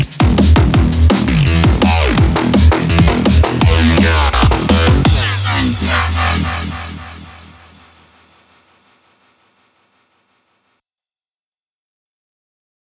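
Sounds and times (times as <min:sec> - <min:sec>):
heavy bass: 0:00.0 - 0:08.5.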